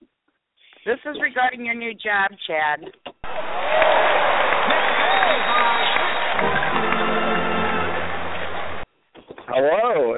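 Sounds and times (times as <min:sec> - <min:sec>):
speech: 0:00.8 - 0:07.1, 0:09.5 - 0:10.1
restless crowd clapping: 0:03.2 - 0:08.9.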